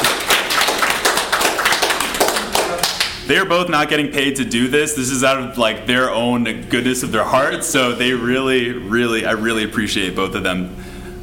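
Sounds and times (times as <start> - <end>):
audience applause: 0.0 - 3.2
speech: 3.3 - 10.9.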